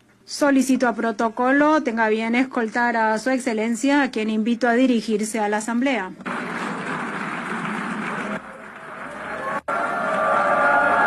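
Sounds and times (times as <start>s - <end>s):
speech: 0.3s - 6.4s
crowd booing in protest: 6.3s - 11.0s.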